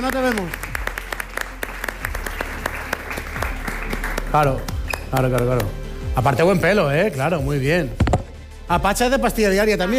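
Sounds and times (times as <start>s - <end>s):
speech: 0.0s - 0.6s, 4.3s - 8.0s, 8.7s - 9.9s
audience applause: 0.0s - 5.0s.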